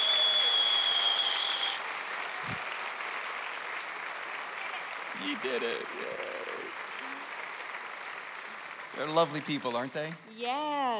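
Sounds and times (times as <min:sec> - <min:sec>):
long high whistle: 0:00.0 - 0:01.8
studio audience applause at a talk show: 0:00.0 - 0:10.8
speech: 0:05.2 - 0:06.5, 0:09.0 - 0:10.9.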